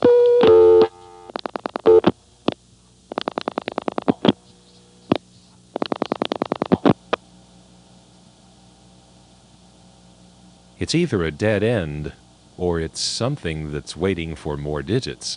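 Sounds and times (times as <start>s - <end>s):
telephone exchange tone on a no-test trunk: 0.0s - 1.3s
telephone exchange signalling clicking pulses: 2.5s - 4.4s, 5.1s - 7.1s
speech: 10.8s - 15.3s.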